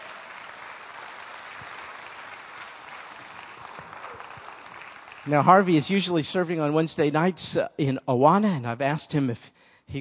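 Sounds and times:
audience clapping: 0.0s - 6.2s
speech: 5.2s - 10.0s.

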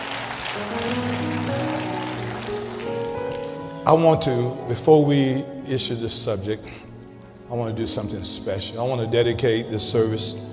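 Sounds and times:
audience clapping hands: 0.0s - 3.6s
speech: 3.9s - 6.8s, 7.5s - 10.5s.

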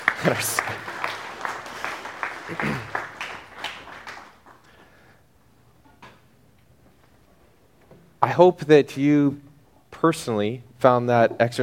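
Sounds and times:
audience clapping hands: 0.0s - 4.9s
speech: 0.2s - 0.9s, 2.5s - 3.0s, 8.2s - 11.6s.

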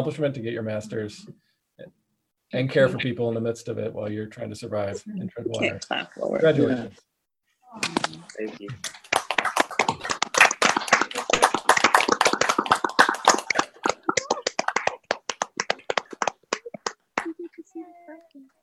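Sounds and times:
speech: 0.0s - 7.1s, 7.7s - 9.0s
group clapping over a video call: 7.8s - 17.6s.

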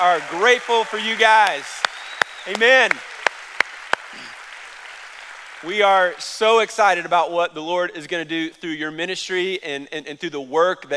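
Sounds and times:
speech: 0.0s - 3.1s, 5.6s - 10.9s
church audience round of applause: 0.0s - 6.7s.

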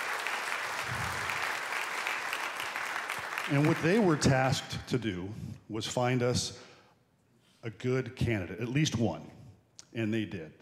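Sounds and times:
crowd applauding: 0.0s - 4.5s
speech: 3.5s - 6.7s, 7.6s - 10.6s.

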